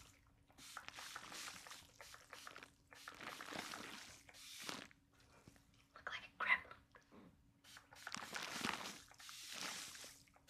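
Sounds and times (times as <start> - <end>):
spray bottle spraying mist: 0.6 - 4.9, 7.6 - 10.1.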